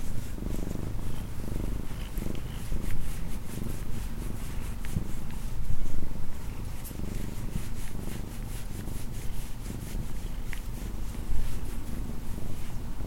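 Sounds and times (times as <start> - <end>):
cat purring: 0.0 - 13.0.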